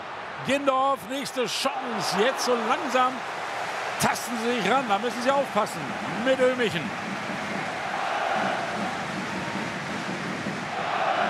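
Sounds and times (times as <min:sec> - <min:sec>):
football stadium crowd atmosphere: 0:00.0 - 0:11.2
speech: 0:00.4 - 0:03.4, 0:04.0 - 0:07.2.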